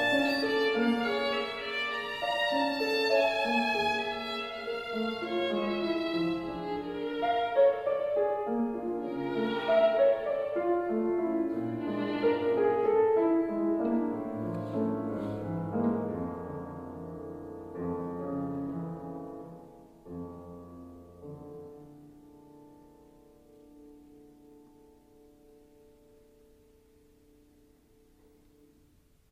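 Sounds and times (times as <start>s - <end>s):
violin: 0.0s - 17.2s
piano: 0.0s - 29.3s.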